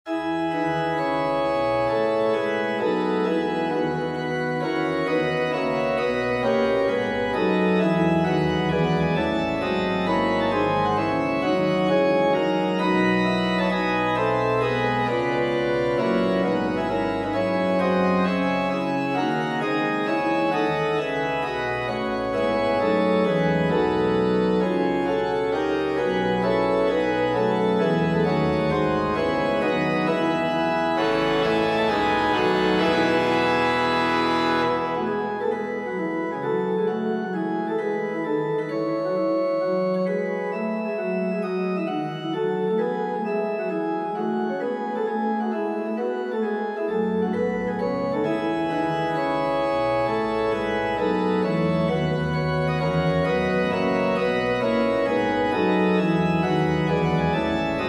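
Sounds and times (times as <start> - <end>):
organ playing: 0.1 - 57.8.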